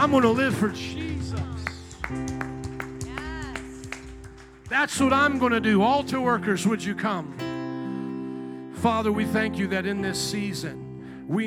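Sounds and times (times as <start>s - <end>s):
speech: 0.0s - 2.5s, 4.7s - 7.5s, 8.8s - 11.4s
audience hand clapping in praise: 0.0s - 6.1s.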